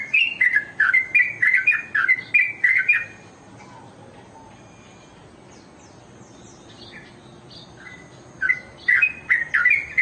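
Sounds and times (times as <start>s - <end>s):
Oriental magpie-robin song: 0.0s - 3.3s, 5.8s - 10.0s.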